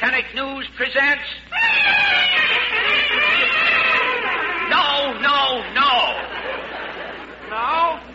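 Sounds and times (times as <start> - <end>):
speech: 0.2 - 2.0
trumpet fanfare played on two trumpets: 1.5 - 5.7
laughter: 1.6 - 8.1.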